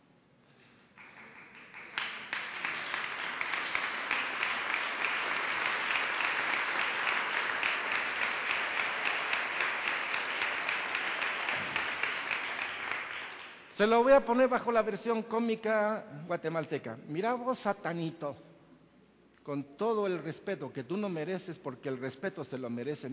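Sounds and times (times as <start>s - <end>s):
audience applause: 1.0s - 13.6s
speech: 13.8s - 18.5s, 19.4s - 23.1s.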